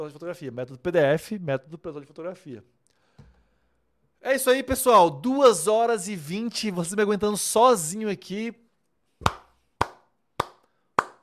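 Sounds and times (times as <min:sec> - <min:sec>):
speech: 0:00.0 - 0:02.8, 0:04.2 - 0:08.6
clapping: 0:09.2 - 0:11.2.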